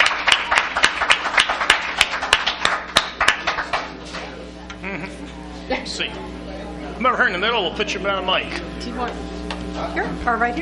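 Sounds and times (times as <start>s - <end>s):
audience applause: 0.0s - 4.0s
speech: 5.9s - 6.4s, 7.0s - 10.6s.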